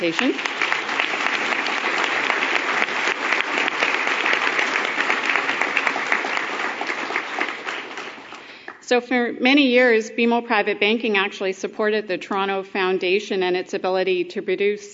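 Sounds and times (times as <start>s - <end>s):
speech: 0.0s - 0.7s, 8.9s - 14.9s
audience applause: 0.0s - 8.8s.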